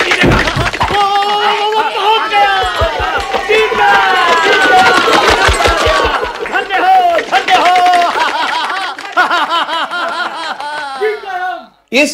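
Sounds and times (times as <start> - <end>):
quick rhythmic thuds: 0.0 - 8.5
crowd cheering and laughing at a chariot race: 0.0 - 11.4.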